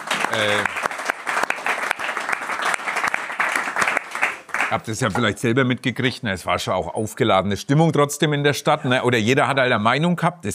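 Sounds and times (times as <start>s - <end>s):
audience applause: 0.0s - 5.1s
speech: 0.4s - 0.8s, 4.7s - 10.5s.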